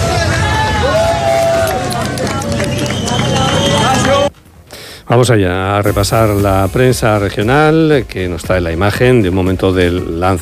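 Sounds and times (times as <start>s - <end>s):
rescue crowd applauding: 0.0s - 4.3s
speech: 5.1s - 10.4s.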